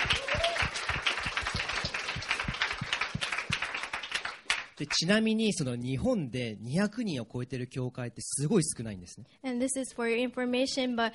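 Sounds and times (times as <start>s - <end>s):
audience applauding: 0.0s - 5.1s
speech: 4.8s - 11.1s.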